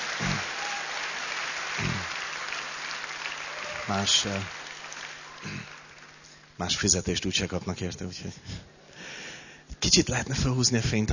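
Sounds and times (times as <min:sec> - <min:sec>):
audience applause: 0:00.0 - 0:06.3
speech: 0:03.9 - 0:04.6, 0:05.4 - 0:05.8, 0:06.6 - 0:08.7, 0:09.8 - 0:11.1.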